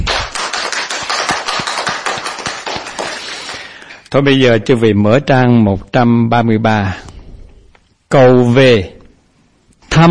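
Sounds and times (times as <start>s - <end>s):
crowd applauding: 0.0s - 3.8s
speech: 4.1s - 7.1s, 8.1s - 9.0s, 10.0s - 10.1s.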